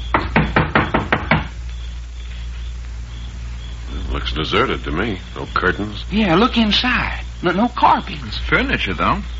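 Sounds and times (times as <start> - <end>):
knocking on a wooden door: 0.1 - 1.6
speech: 4.4 - 9.3.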